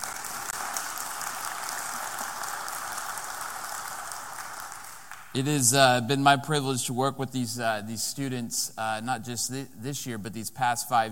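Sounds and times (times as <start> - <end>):
audience applause: 0.0 - 5.3
speech: 5.4 - 11.1.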